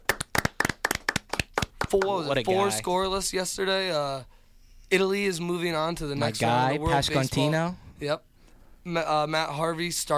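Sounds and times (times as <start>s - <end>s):
round of applause: 0.0s - 2.2s
speech: 1.9s - 10.1s.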